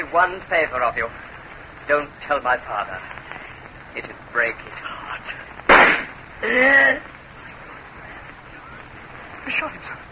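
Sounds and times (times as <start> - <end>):
speech: 0.1 - 1.3, 1.9 - 3.3, 3.9 - 5.6, 6.4 - 7.1, 9.5 - 10.0
pistol gunshot in a radio drama: 5.7 - 6.2.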